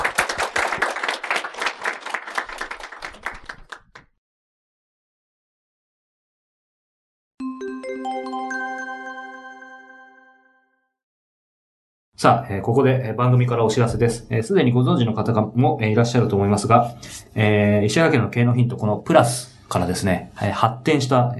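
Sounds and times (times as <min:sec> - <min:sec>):
audience applause at a host's request: 0:00.0 - 0:04.0
ringing harmonic tone: 0:07.4 - 0:10.8
speech: 0:12.2 - 0:21.3.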